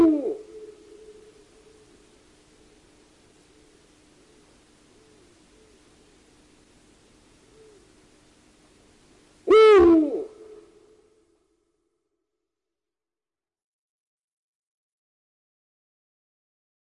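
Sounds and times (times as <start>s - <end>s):
Eurasian eagle-owl harsh call sliding down in pitch: 0.0s - 2.0s, 9.5s - 10.9s.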